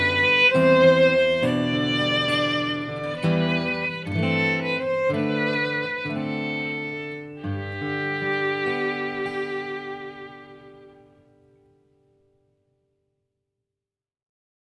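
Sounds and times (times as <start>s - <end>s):
violin: 0.0s - 11.5s
guitar: 0.0s - 12.6s.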